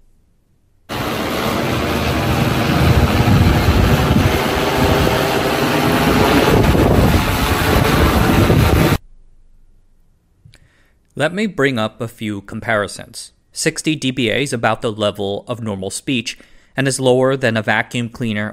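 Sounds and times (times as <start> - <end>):
delivery drone descending for drop-off: 0.9 - 9.0
speech: 11.2 - 18.5.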